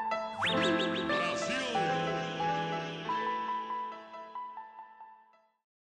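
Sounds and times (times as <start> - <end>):
brega music: 0.4 - 4.4.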